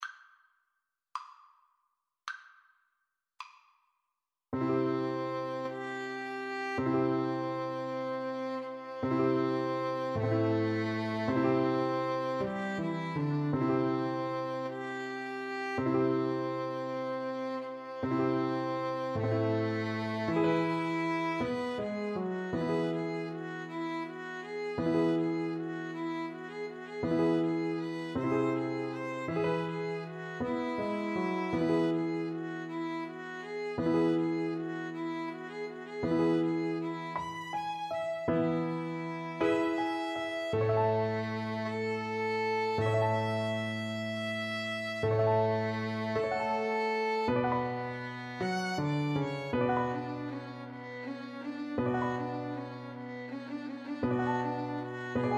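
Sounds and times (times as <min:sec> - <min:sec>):
piano trio: 0:04.6 - 0:35.4, 0:36.0 - 0:55.3.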